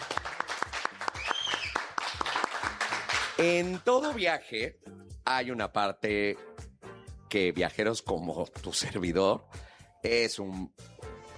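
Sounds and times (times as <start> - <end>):
audience applause: 0.0 - 3.4
speech: 3.4 - 6.5, 7.3 - 10.9.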